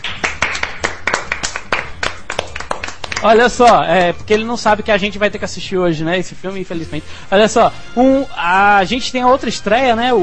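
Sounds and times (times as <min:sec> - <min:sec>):
hand clapping: 0:00.0 - 0:04.2
speech: 0:03.2 - 0:10.2.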